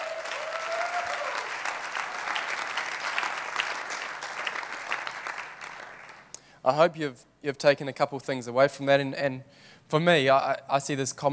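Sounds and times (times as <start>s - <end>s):
audience applauding: 0.0s - 6.3s
speech: 6.6s - 11.3s.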